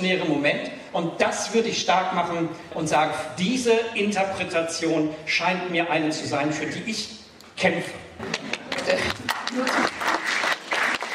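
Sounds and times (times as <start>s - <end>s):
speech: 0.0s - 9.9s
audience applause: 8.3s - 11.1s.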